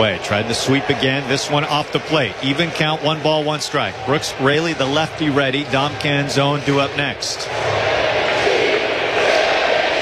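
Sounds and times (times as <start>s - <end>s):
speech: 0.0s - 8.0s
stadium crowd chanting a player's name: 0.0s - 10.0s.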